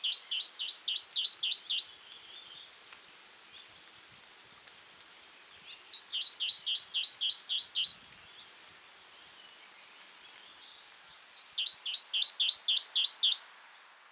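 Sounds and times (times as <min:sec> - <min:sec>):
great tit calls: 0:00.0 - 0:01.9, 0:06.0 - 0:08.0, 0:11.4 - 0:13.5
faint background hiss: 0:00.0 - 0:14.0.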